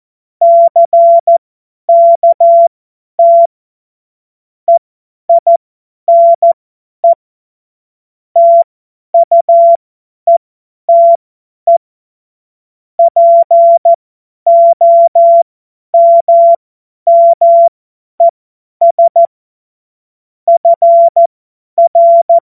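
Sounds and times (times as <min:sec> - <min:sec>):
CW Morse code beeps: 0:00.4 - 0:03.5, 0:04.7 - 0:07.2, 0:08.4 - 0:11.8, 0:13.0 - 0:15.4, 0:16.0 - 0:19.3, 0:20.5 - 0:22.4.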